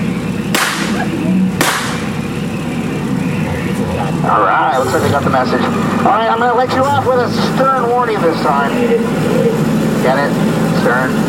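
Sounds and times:
boat engine rumbling: 0.0 - 11.2
warning gunshots on a Disneyland boat ride: 0.5 - 2.2
speech: 4.2 - 11.2.

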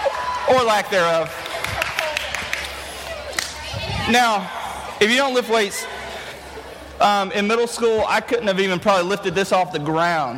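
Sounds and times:
low murmur: 0.0 - 10.3
speech: 0.5 - 1.4, 4.1 - 5.9, 7.0 - 10.3
scattered audience hand claps: 1.2 - 3.6.

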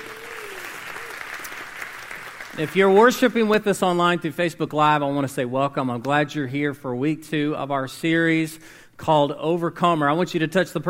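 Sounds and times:
audience applause: 0.0 - 3.3
speech: 2.6 - 10.8.

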